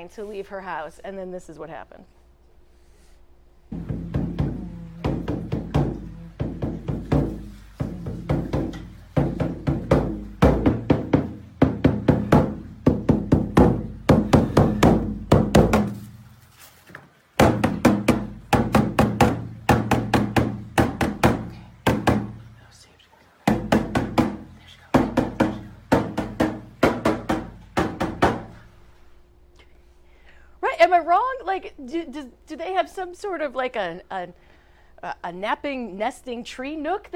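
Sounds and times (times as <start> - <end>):
speech: 0.0 - 2.2, 30.9 - 37.1
bongo drums being played: 3.7 - 16.2, 17.4 - 22.5, 23.5 - 28.7.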